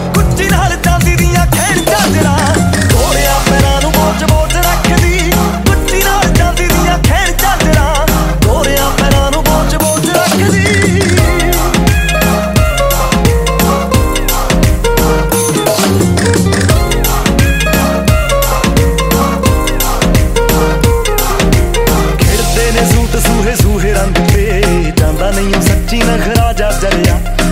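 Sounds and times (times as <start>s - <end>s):
Punjabi music: 0.0s - 27.5s.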